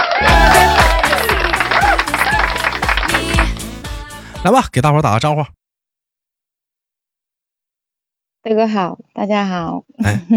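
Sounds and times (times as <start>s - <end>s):
warm applause: 0.0s - 4.0s
speech: 4.4s - 5.6s, 8.4s - 10.3s.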